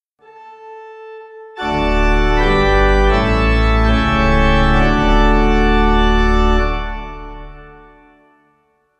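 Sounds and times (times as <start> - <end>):
pipe organ amen: 1.6 - 8.0.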